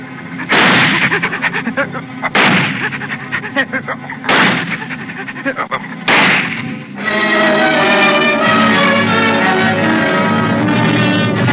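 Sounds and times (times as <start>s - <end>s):
steady sustained harmonic drone: 0.0s - 11.5s
laughter: 0.4s - 6.1s
booming gunshots: 0.5s - 1.2s, 2.3s - 2.9s, 4.3s - 4.8s, 6.0s - 6.8s.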